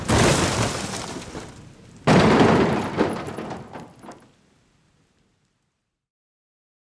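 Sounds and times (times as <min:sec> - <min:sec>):
truck crashing and overturning into the wasteland: 0:00.0 - 0:04.4.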